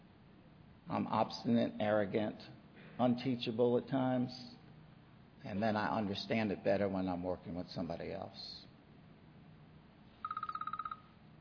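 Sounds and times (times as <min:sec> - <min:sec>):
faint low hum: 0:00.0 - 0:11.3
speech: 0:00.9 - 0:04.6, 0:05.4 - 0:08.6
timer beeping: 0:10.2 - 0:11.1.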